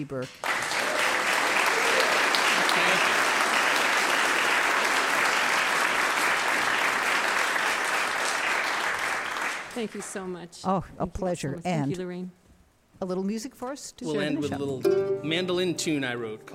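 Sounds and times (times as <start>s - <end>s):
speech: 0.0s - 0.6s, 2.8s - 3.2s, 9.8s - 12.4s, 13.0s - 16.5s
audience applause: 0.4s - 10.3s.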